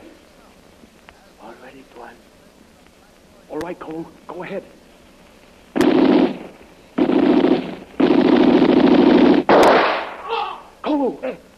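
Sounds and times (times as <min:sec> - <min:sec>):
speech: 0:01.7 - 0:02.4, 0:03.5 - 0:04.8
gunshot: 0:05.8 - 0:10.3
wavering high-pitched cry: 0:10.2 - 0:10.7.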